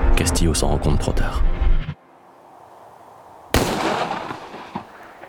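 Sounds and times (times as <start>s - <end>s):
speech: 0.2s - 1.5s
hunting shotgun blast: 3.6s - 5.2s.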